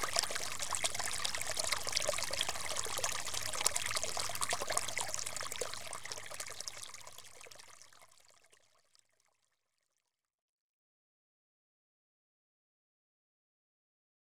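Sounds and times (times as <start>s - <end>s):
stream flowing: 0.0s - 7.4s.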